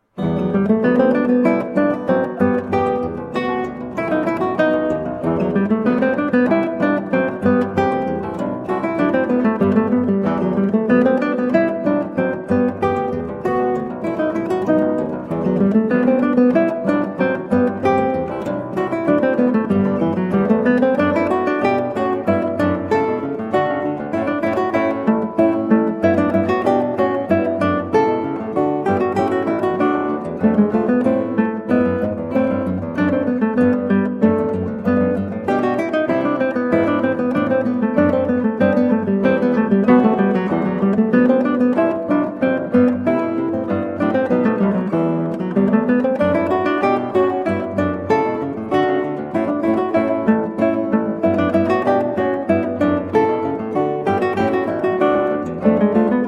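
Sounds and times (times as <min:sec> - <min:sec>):
vivace guitar playing: 0:00.0 - 0:56.2.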